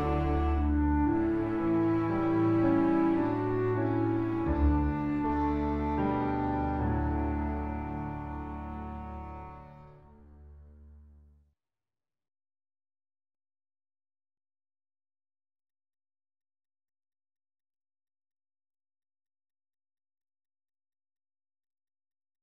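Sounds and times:
lullaby backing track: 0.0s - 9.7s.

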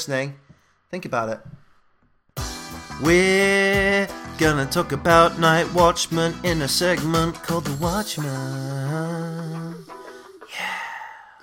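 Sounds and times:
speech: 0.0s - 1.6s, 3.0s - 10.8s
breathing into a microphone: 0.4s - 0.9s, 1.5s - 2.0s, 9.9s - 11.4s.

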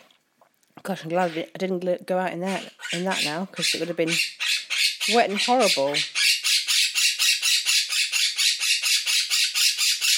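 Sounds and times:
speech: 0.8s - 4.4s, 5.1s - 6.2s
parrot squawking loudly: 2.4s - 10.1s.

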